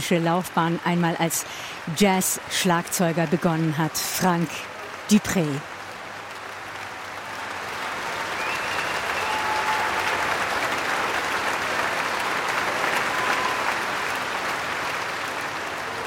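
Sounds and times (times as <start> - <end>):
speech: 0.0 - 5.7
concert audience applause: 0.0 - 16.0
whistles and cheers: 6.8 - 14.2.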